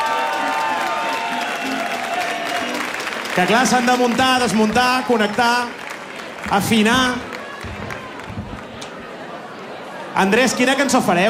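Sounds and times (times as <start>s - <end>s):
faint cheers: 0.0s - 5.7s, 6.5s - 9.3s
audience applauding: 0.0s - 9.4s
speech: 3.4s - 5.8s, 6.4s - 7.3s, 10.2s - 11.2s.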